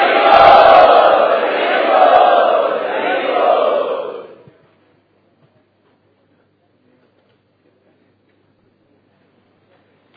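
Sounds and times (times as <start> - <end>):
crowd chanting loudly at a kirtan gathering: 0.0 - 4.4.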